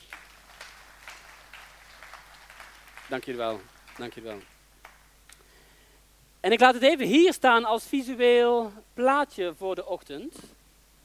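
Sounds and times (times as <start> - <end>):
audience applause: 0.0 - 5.1
speech: 3.1 - 4.5, 6.4 - 10.5.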